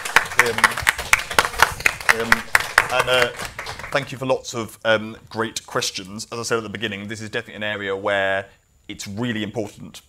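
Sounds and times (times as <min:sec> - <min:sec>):
small audience hand claps: 0:00.0 - 0:04.1
speech: 0:00.4 - 0:00.8, 0:02.2 - 0:10.0.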